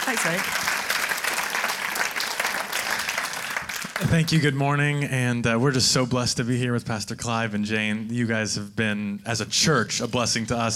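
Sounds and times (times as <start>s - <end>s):
audience applause: 0.0s - 4.5s
speech: 0.1s - 0.8s, 4.0s - 10.7s.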